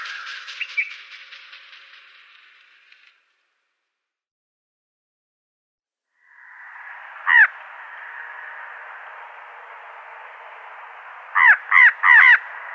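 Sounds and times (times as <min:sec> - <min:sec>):
fan-tailed raven croaking calls: 0:06.2 - 0:12.7.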